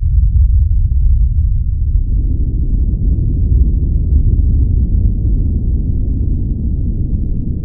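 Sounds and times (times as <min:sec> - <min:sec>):
indoor boom: 0:00.0 - 0:07.5.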